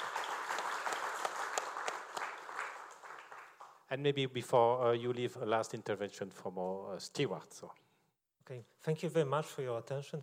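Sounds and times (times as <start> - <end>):
audience applauding the speakers: 0.0 - 3.8
speech: 3.9 - 7.8, 8.5 - 10.2.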